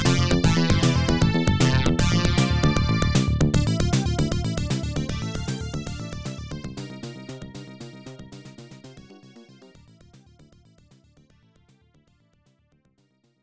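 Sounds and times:
stage 1 game background music: 0.0 - 10.3.

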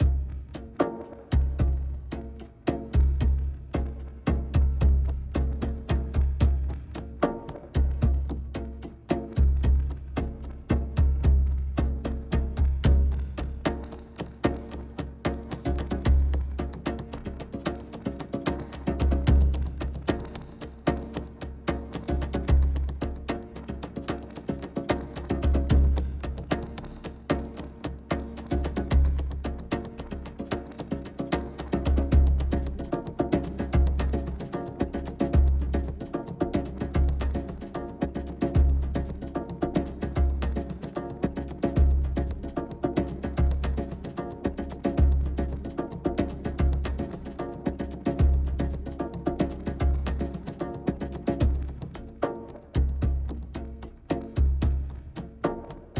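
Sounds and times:
drums: 0.0 - 55.9.

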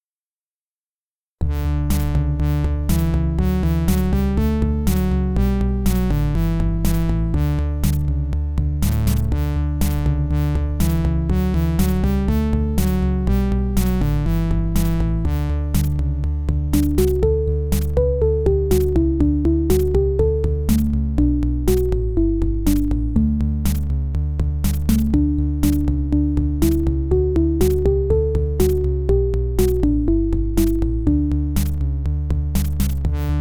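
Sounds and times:
IBM-PC AdLib sound card music: 1.4 - 33.3.

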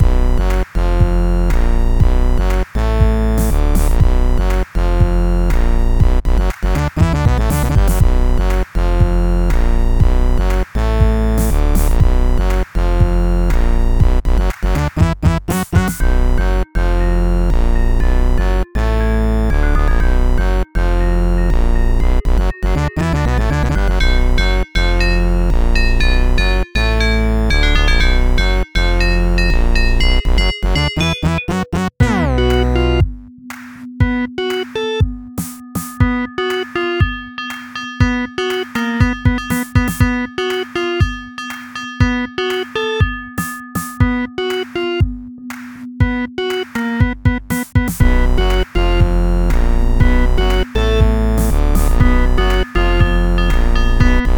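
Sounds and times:
funk music: 0.0 - 54.3.

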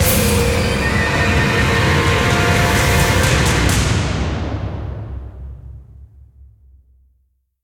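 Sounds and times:
musical stinger: 0.0 - 4.1.

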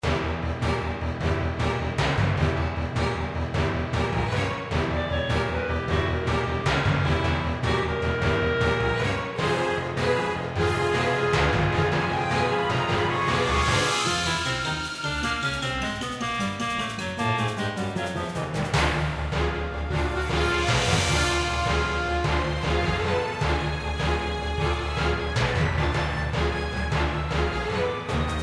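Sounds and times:
epic boss battle music: 0.0 - 28.4.

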